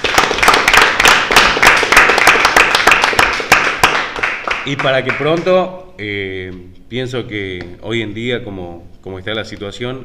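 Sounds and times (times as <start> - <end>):
applause for war veterans: 0.0 - 5.5
speech: 4.7 - 10.0.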